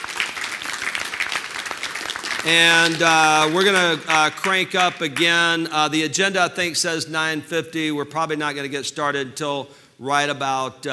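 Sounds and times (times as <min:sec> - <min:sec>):
audience applause at a business meeting: 0:00.0 - 0:04.6
speech: 0:02.4 - 0:10.9.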